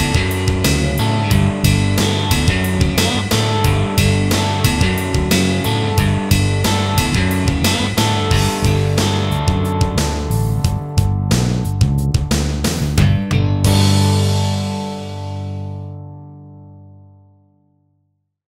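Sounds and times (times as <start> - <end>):
prog rock licks: 0.0 - 17.0.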